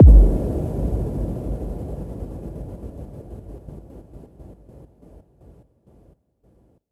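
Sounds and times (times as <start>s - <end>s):
impact hit: 0.0s - 2.3s.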